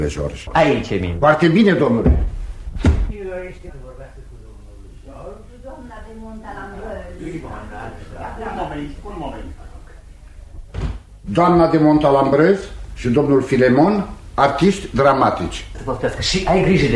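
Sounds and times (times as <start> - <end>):
speech: 0.0 - 4.2, 11.3 - 16.9
door opening with a loud low thud: 2.0 - 3.2, 10.6 - 11.1.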